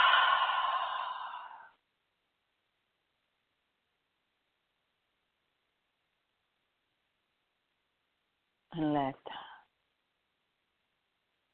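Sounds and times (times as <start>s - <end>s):
breathy exhale during a guided breathing moment in a spiritual meditation: 0.0s - 1.8s
speech: 8.8s - 9.4s.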